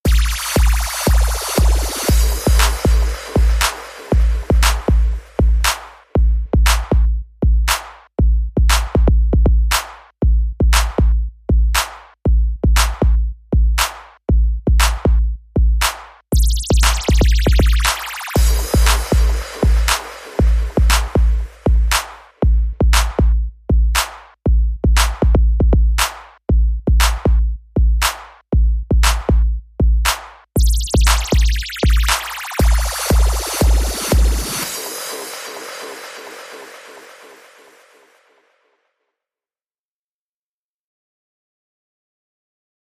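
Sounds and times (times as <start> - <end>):
beat: 0.0 - 38.3.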